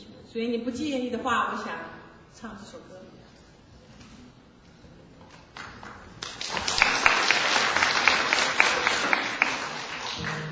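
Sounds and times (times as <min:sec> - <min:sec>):
speech: 0:00.4 - 0:03.2
audience clapping: 0:05.4 - 0:10.5.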